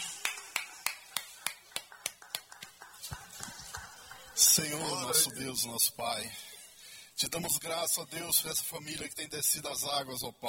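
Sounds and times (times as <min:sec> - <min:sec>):
steady rhythmic clapping: 0:00.0 - 0:05.1
speech: 0:04.6 - 0:06.5, 0:07.2 - 0:10.4.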